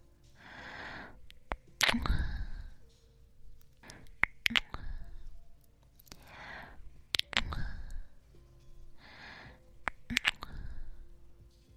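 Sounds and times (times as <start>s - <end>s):
kissing sounds alternating left and right: 1.4s - 2.1s, 3.8s - 4.9s, 7.1s - 7.6s, 9.8s - 10.6s.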